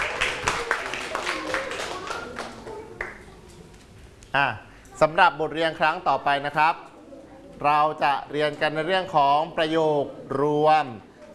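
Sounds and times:
classmates clapping: 0.0 - 3.5
speech: 4.4 - 6.9, 7.6 - 11.1.

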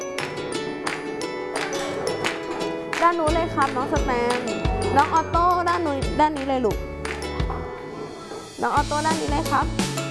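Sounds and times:
chairs knocking and scraping as children put them back: 0.2 - 5.6, 6.8 - 8.6
speech: 3.1 - 6.9, 8.6 - 9.9.

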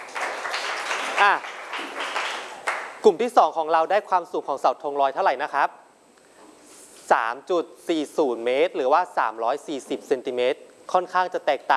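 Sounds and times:
classroom group clapping: 0.0 - 3.0
speech: 1.2 - 2.0, 3.0 - 5.8, 7.1 - 11.7.

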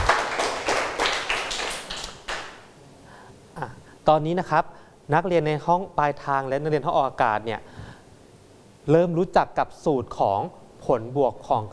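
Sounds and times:
group of students clapping in a steady rhythm: 0.0 - 2.7
speech: 4.1 - 7.8, 8.8 - 11.7.

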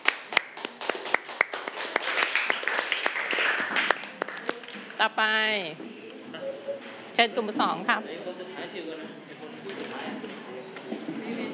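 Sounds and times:
students clapping for a group: 0.0 - 5.0
speech: 5.0 - 5.9, 7.2 - 10.5.

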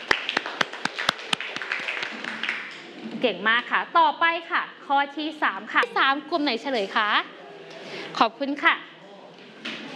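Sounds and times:
group of people clapping together: 0.0 - 3.0
speech: 3.2 - 7.3, 8.2 - 8.9.

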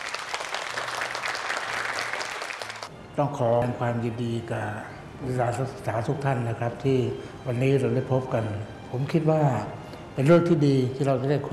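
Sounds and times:
audience applause welcoming a guest: 0.0 - 2.9
speech: 3.2 - 11.5.

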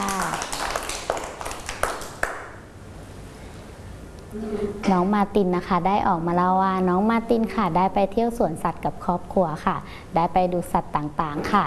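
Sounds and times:
children clapping: 0.0 - 2.6
speech: 4.4 - 11.6.

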